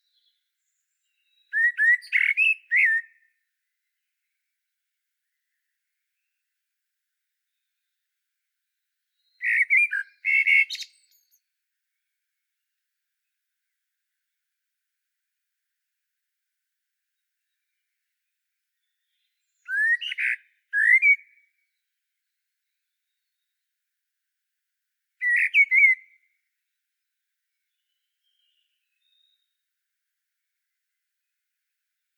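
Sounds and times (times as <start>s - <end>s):
common blackbird whistled song: 0.0s - 3.3s, 9.2s - 11.4s, 18.8s - 21.5s, 25.2s - 26.3s, 27.7s - 29.5s.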